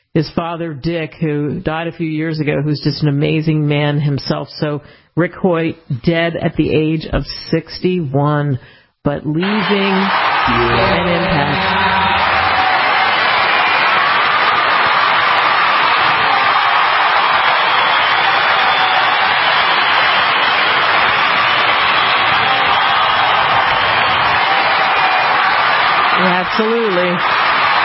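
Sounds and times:
speech: 0:00.2 - 0:12.0, 0:26.6 - 0:27.4
audience applause: 0:09.4 - 0:27.8.

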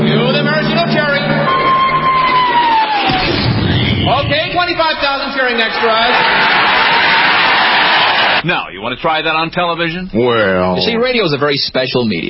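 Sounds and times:
crowd of extras cheering: 0:00.1 - 0:08.5
speech: 0:08.4 - 0:12.2.

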